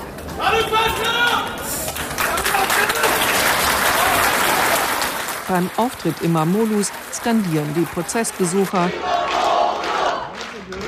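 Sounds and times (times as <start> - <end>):
applause in courtroom: 0.0 - 10.8
speech: 5.5 - 9.2.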